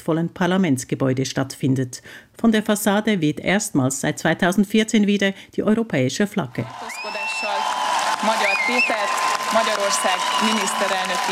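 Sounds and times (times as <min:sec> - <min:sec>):
speech: 0:00.0 - 0:07.2, 0:08.2 - 0:11.2
applause outside parliament: 0:06.6 - 0:11.2
cheering outside parliament: 0:06.6 - 0:11.2.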